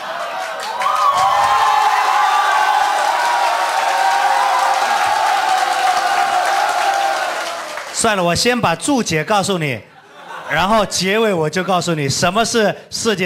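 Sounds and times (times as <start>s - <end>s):
audience cheering and shouting: 0.0s - 7.9s
large audience applauding: 0.0s - 8.2s
speech: 8.0s - 9.9s, 10.5s - 13.2s
laughter: 9.9s - 11.8s.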